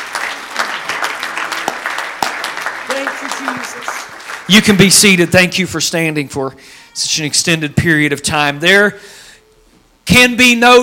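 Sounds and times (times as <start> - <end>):
audience clapping: 0.0 - 5.7
speech: 3.4 - 9.2, 10.1 - 10.8.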